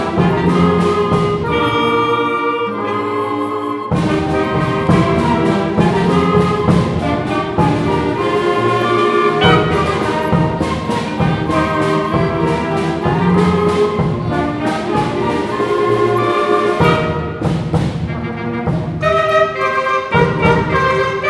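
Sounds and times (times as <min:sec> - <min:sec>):
orchestra playing: 0:00.0 - 0:21.2.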